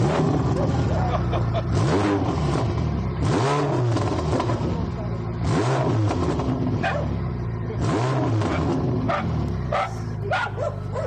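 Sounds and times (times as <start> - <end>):
sports car engine revving through exhausts: 0.0 - 11.0
laughter: 0.4 - 1.8
dogs barking: 6.8 - 7.2, 8.5 - 11.0.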